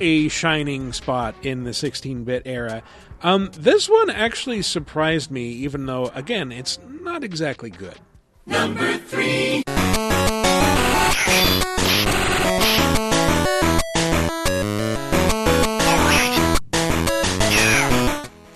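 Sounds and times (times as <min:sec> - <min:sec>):
speech: 0:00.0 - 0:09.7
loud buzzy Game Boy Color chiptune music: 0:09.9 - 0:16.6, 0:17.2 - 0:18.2
distorted Game Boy Color game voice samples: 0:11.0 - 0:13.0, 0:15.7 - 0:16.5, 0:17.4 - 0:18.1.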